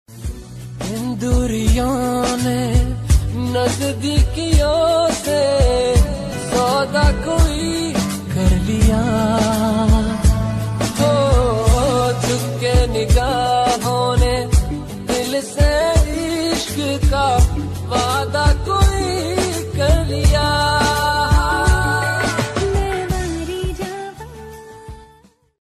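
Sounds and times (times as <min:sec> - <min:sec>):
romantic Bollywood song: 0:00.1 - 0:25.4.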